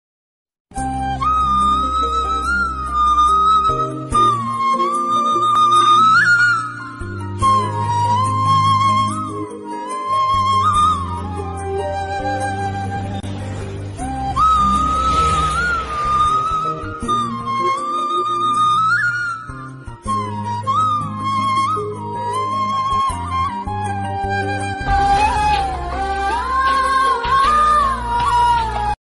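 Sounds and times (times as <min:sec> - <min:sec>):
Tamil romantic background music ringtone: 0:00.7 - 0:29.0.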